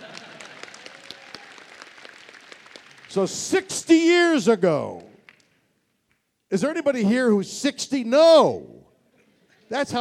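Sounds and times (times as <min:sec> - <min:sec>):
audience applause: 0:00.0 - 0:03.1
speech: 0:03.1 - 0:05.1, 0:06.5 - 0:08.8, 0:09.7 - 0:09.9.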